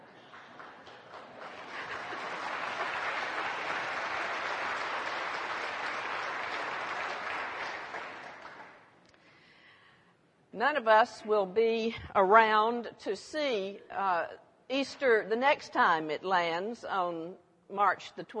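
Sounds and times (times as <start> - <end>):
audience applause: 0.0 - 8.8
speech: 10.6 - 18.3.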